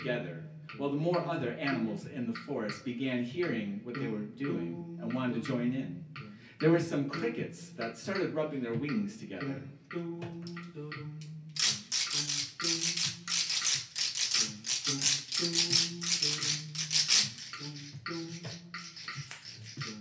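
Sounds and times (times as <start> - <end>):
speech: 0.0 - 11.3
old seed pods rattling on the forest floor: 11.6 - 19.9.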